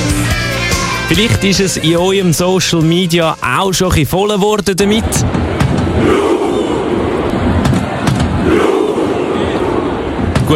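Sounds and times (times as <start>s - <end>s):
speech: 1.1s - 5.4s
Norwegian football fans chanting at the World Cup: 5.4s - 10.5s.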